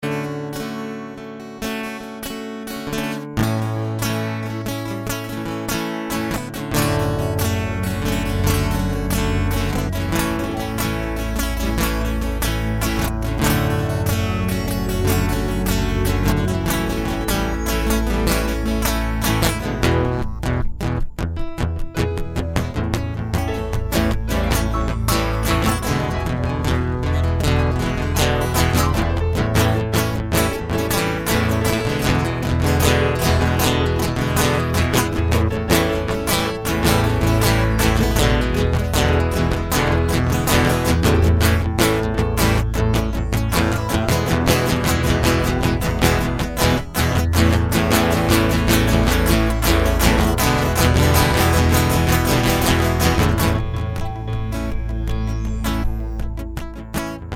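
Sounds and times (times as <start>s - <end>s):
instrumental music: 0.0s - 57.3s.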